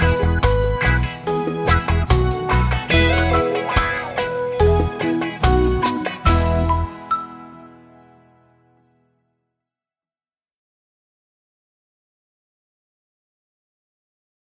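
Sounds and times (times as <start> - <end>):
karaoke singing: 0.0 - 7.3.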